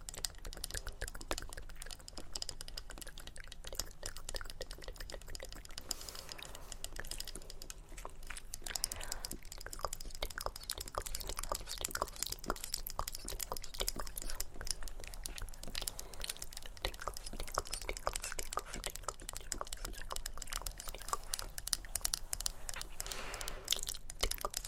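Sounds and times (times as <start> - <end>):
layered tapping and scratching: 0.0 - 24.6
low steady hum: 0.0 - 24.6.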